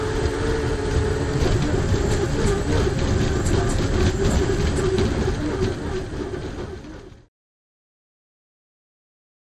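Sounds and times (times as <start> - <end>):
hydroplane interior: 0.0 - 7.3.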